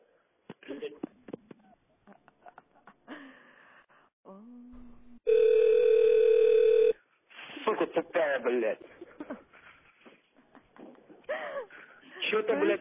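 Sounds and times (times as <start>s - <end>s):
telephone ringing: 5.3s - 7.0s
speech: 8.5s - 9.0s, 12.4s - 12.7s.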